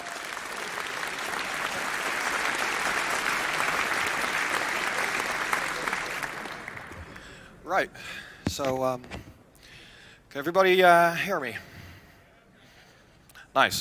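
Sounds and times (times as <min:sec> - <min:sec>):
audience applause: 0:00.0 - 0:07.3
speech: 0:07.7 - 0:09.3, 0:10.3 - 0:11.7, 0:13.6 - 0:13.7.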